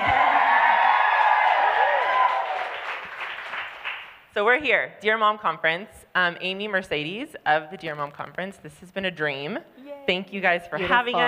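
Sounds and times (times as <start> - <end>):
live crowd cheering and whooping: 0.0 - 3.1
speech: 4.4 - 11.2.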